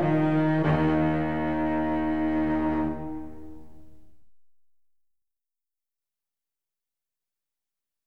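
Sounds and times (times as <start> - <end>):
cello suite: 0.0 - 4.3.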